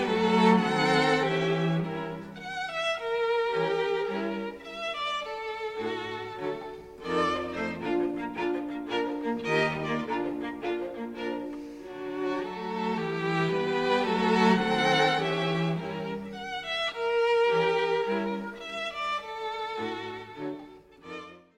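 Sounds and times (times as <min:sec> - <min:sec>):
string quartet playing: 0:00.0 - 0:21.5.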